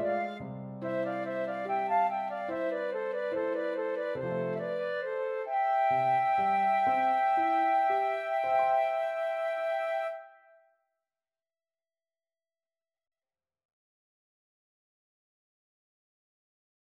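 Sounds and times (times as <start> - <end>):
flutes playing opera music: 0.0 - 10.7.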